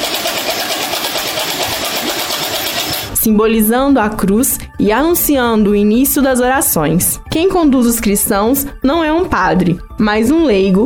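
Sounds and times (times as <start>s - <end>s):
wooden ratchet rattle (matraca): 0.0s - 3.1s
speech: 3.2s - 10.8s.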